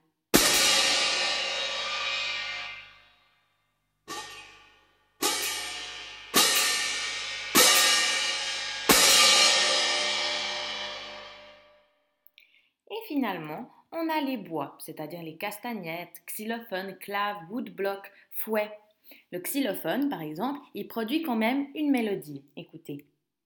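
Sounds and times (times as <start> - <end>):
cymbals being played: 0.4 - 3.0, 4.1 - 11.7
speech: 13.1 - 23.1.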